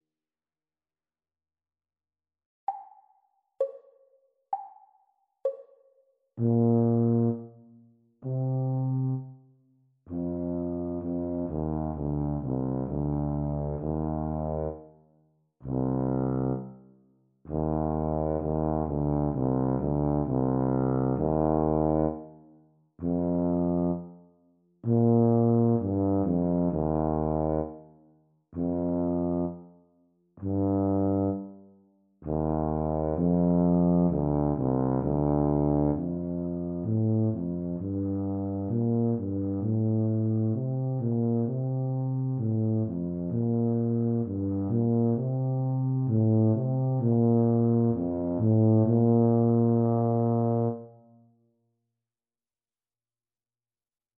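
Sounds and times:
E-flat tuba duet practice: 6.4s - 9.4s, 10.1s - 14.9s, 15.6s - 16.9s, 17.5s - 24.2s, 24.8s - 28.0s, 28.6s - 29.8s, 30.4s - 51.2s.

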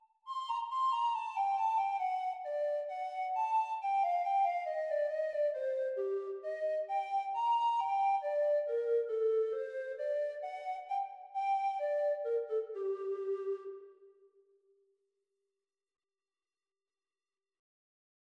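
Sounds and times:
treble recorder: 0.0s - 14.0s.

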